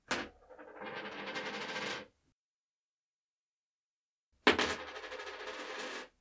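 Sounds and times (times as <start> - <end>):
coin falling and spinning: 0.1 - 2.1, 4.5 - 6.1.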